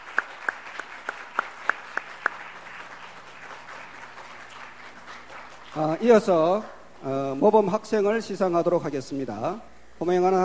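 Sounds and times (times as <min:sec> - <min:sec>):
audience clapping: 0:00.0 - 0:06.2
faint hum: 0:00.0 - 0:10.4
speech: 0:05.8 - 0:10.4.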